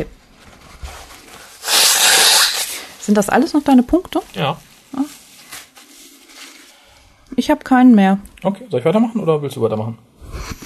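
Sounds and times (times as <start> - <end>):
nose blowing: 1.6 - 2.9
speech: 3.1 - 5.2, 7.4 - 10.0.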